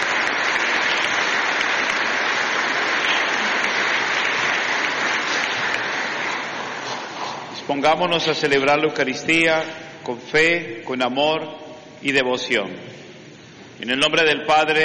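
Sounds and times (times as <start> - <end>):
audience applause: 0.0 - 7.6
speech: 7.7 - 13.0, 13.8 - 14.8.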